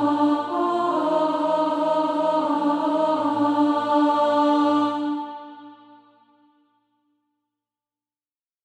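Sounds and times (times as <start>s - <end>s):
alto voice singing practice music: 0.0s - 6.3s.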